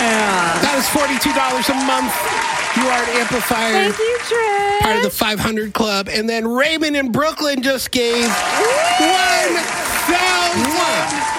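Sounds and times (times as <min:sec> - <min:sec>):
audience applause: 0:00.0 - 0:05.2, 0:08.0 - 0:11.3
speech: 0:00.8 - 0:11.3.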